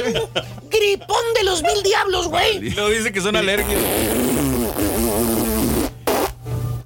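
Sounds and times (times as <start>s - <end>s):
laughter: 0.0s - 2.0s
speech: 0.0s - 5.0s
nose blowing: 3.6s - 6.4s.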